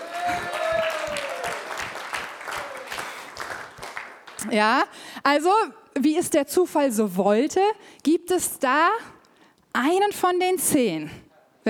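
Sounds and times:
audience applause: 0:00.0 - 0:04.5
speech: 0:04.4 - 0:09.2, 0:09.8 - 0:11.6.

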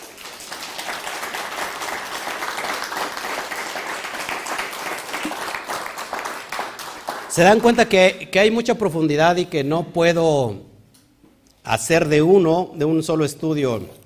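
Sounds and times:
applause: 0:00.0 - 0:07.9
speech: 0:07.4 - 0:10.7, 0:11.6 - 0:14.0.

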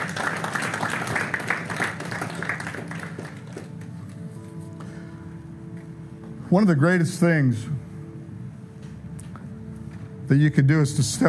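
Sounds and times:
audience applause: 0:00.0 - 0:04.0
speech: 0:06.5 - 0:07.8, 0:10.3 - 0:11.2.

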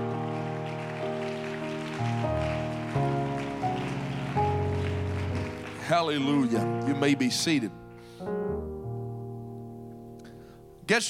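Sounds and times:
audience clapping: 0:00.0 - 0:07.6
speech: 0:05.9 - 0:08.4, 0:10.9 - 0:11.0.

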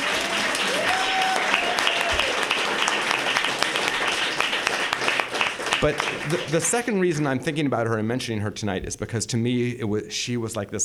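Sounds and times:
audience applause: 0:00.0 - 0:07.7
laughter: 0:00.0 - 0:10.8
speech: 0:05.8 - 0:10.8.

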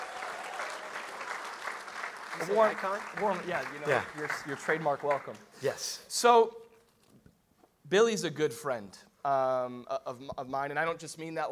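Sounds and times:
audience applause welcoming a pastor to the stage: 0:00.0 - 0:05.5
speech: 0:02.4 - 0:06.6, 0:07.9 - 0:11.5.

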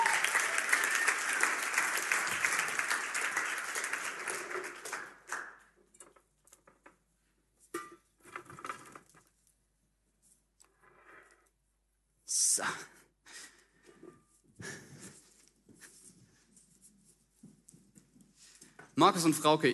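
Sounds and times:
audience applause: 0:00.0 - 0:05.7
speech: 0:12.6 - 0:13.0, 0:19.0 - 0:19.7.

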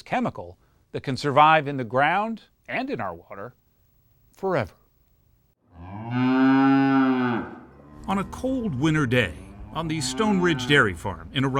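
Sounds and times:
speech: 0:00.0 - 0:03.6, 0:04.4 - 0:04.8, 0:05.8 - 0:11.5
dairy cow mooing: 0:05.7 - 0:11.2.

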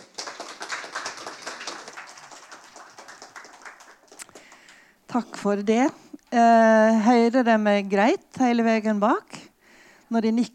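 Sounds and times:
audience applause: 0:00.0 - 0:04.8
speech: 0:05.1 - 0:09.4, 0:10.1 - 0:10.5.

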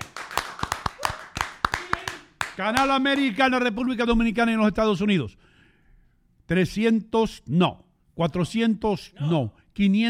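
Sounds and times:
scattered applause from a small group: 0:00.0 - 0:03.4
speech: 0:02.6 - 0:05.4, 0:06.5 - 0:10.0.

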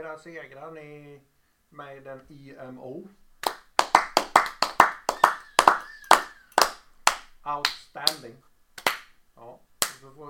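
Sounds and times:
speech: 0:00.0 - 0:03.2, 0:07.4 - 0:08.5, 0:09.4 - 0:10.2
brief clapping: 0:03.4 - 0:08.2.

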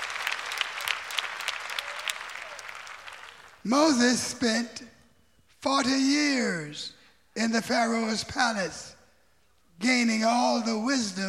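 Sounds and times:
audience clapping hands: 0:00.0 - 0:03.7
speech: 0:03.6 - 0:05.0, 0:05.6 - 0:08.9, 0:09.8 - 0:11.2.

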